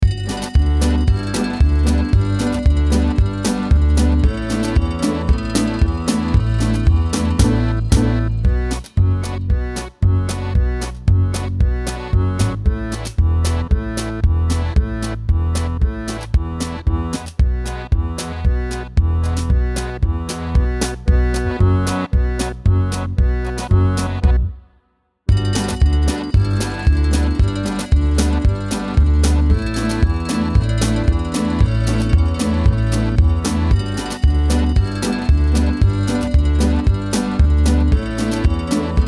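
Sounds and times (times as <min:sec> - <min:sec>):
instrumental music: 0:00.0 - 0:39.0.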